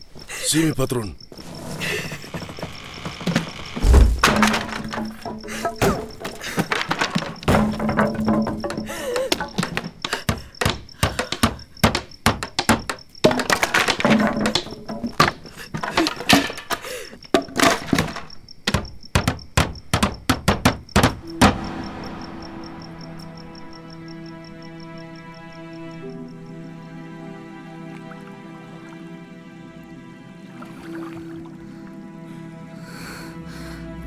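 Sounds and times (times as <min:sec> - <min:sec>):
speech: 0:00.5 - 0:01.2
wooden creaks and clatter: 0:01.4 - 0:21.6
boards being hammered onto a door: 0:03.3 - 0:16.7, 0:17.4 - 0:21.6.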